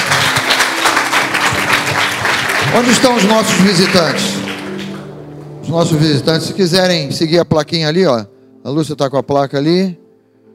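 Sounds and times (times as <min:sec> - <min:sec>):
audience clapping hands: 0:00.0 - 0:05.2
speech: 0:02.8 - 0:04.3, 0:05.6 - 0:10.0.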